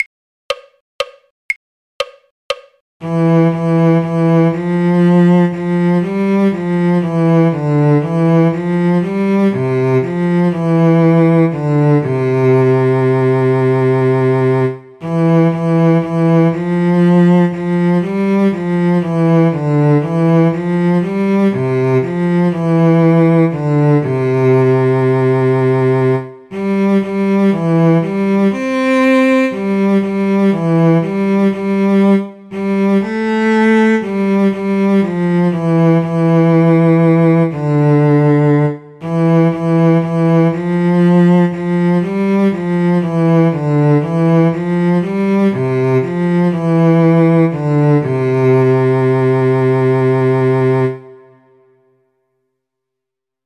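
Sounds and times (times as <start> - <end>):
cello: 3.0 - 51.8.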